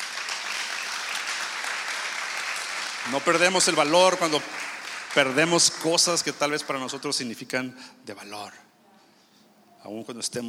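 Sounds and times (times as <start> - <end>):
audience applauding: 0.0 - 7.3
speech: 3.1 - 8.7, 9.8 - 10.4.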